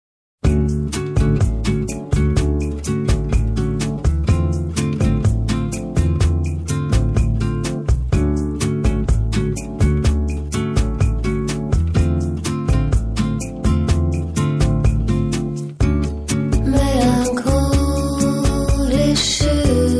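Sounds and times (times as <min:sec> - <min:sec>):
bossa nova music: 0:00.4 - 0:19.9.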